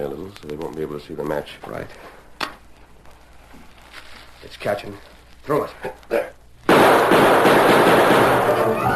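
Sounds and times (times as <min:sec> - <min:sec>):
speech: 0:00.0 - 0:02.2, 0:04.4 - 0:06.4
outlaws opening fire in the darkness: 0:06.7 - 0:08.8.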